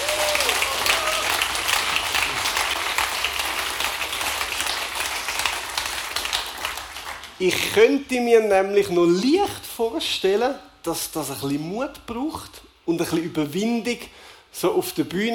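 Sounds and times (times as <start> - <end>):
audience applause: 0.0 - 7.4
speech: 7.4 - 15.3.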